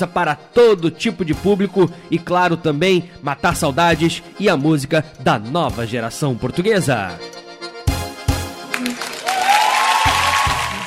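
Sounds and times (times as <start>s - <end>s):
speech: 0.0s - 7.4s
crowd applause: 8.7s - 10.8s.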